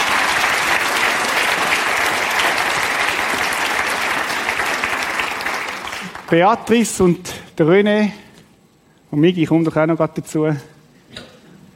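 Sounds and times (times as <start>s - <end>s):
audience applause: 0.0s - 6.6s
speech: 6.3s - 8.2s, 9.1s - 10.7s.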